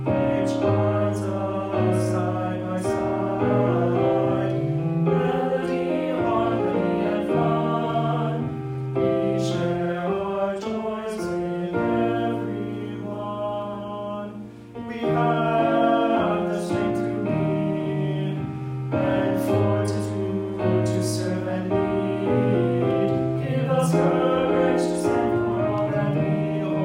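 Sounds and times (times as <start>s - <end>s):
tenor singing a loyalty song: 0.0s - 26.8s.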